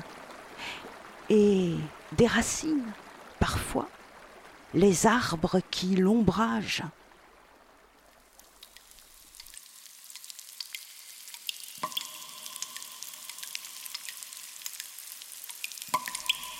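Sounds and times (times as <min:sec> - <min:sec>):
stream gushing in a cave: 0:00.0 - 0:16.5
water dripping in a cave: 0:00.0 - 0:16.5
speech: 0:01.3 - 0:04.0, 0:04.7 - 0:07.0
ringing water plops in a cave: 0:08.2 - 0:16.5.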